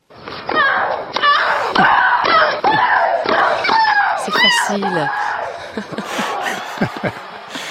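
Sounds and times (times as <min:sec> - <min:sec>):
tennis racket strikes: 0:00.5 - 0:04.2
tennis players' high grunting shrieks: 0:00.6 - 0:07.7
laughter: 0:01.6 - 0:03.4, 0:04.3 - 0:07.7
speech: 0:04.7 - 0:06.2, 0:06.8 - 0:07.3.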